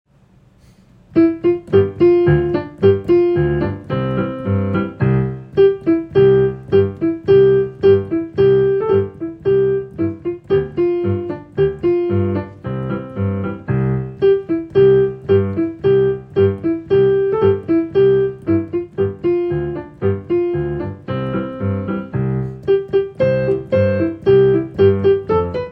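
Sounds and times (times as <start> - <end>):
piano piece: 1.1 - 25.7.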